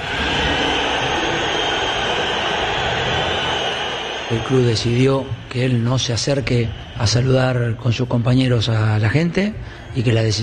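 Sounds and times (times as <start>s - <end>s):
low stadium crowd roar: 0.0s - 8.2s
stadium crowd whistling in disapproval: 0.0s - 9.2s
speech: 4.3s - 10.4s.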